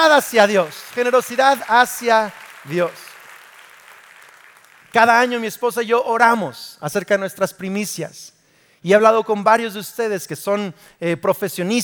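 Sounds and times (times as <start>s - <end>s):
speech: 0.0s - 3.0s, 4.9s - 11.8s
audience applause: 0.0s - 5.2s.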